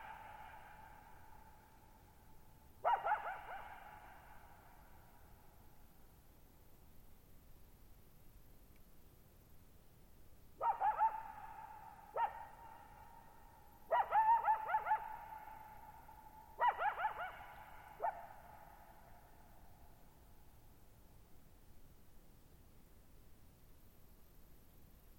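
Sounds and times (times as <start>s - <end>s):
coyote yipping and howling: 0.0s - 1.0s, 2.8s - 4.8s, 10.6s - 19.2s.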